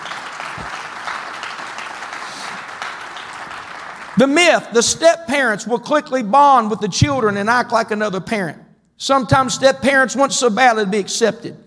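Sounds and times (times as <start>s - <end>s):
audience clapping hands: 0.0s - 4.6s
speech: 0.6s - 0.8s, 4.2s - 11.6s.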